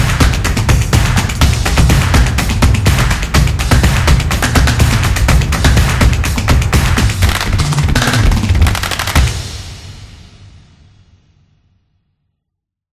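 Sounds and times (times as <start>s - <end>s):
soccer drums: 0.0s - 10.0s.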